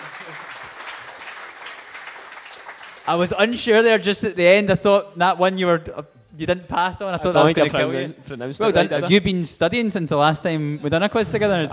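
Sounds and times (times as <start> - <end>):
audience applause: 0.0 - 3.4
speech: 3.1 - 11.7.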